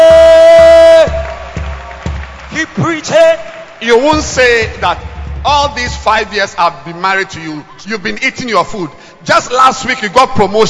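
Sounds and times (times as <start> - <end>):
person whooping: 0.0 - 1.4
crowd cheering: 0.0 - 6.4
hand claps: 1.0 - 5.0
speech: 3.8 - 10.6.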